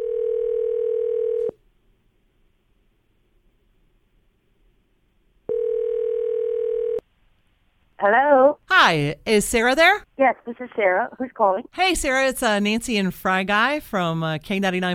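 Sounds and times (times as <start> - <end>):
telephone ringback tone of an outgoing call: 0.0 - 1.5, 5.5 - 7.0
speech: 8.0 - 14.9.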